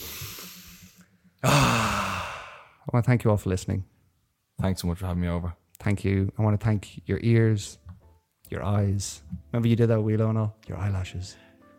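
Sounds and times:
man taking a deep breath: 0.0s - 2.8s
speech: 2.9s - 3.9s, 4.6s - 7.8s, 8.5s - 11.4s.

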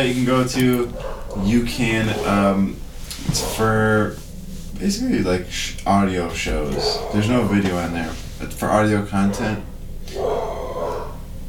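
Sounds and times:
speech: 0.0s - 4.2s, 4.8s - 10.6s
dog barking excitedly: 0.8s - 2.4s, 6.6s - 8.1s, 9.1s - 11.3s.

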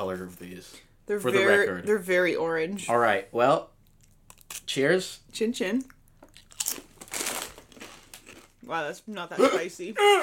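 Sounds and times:
speech: 0.0s - 3.7s, 4.7s - 6.0s, 8.6s - 10.2s
spicy Dorito tortilla chip being bitten and chewed: 6.3s - 8.6s.

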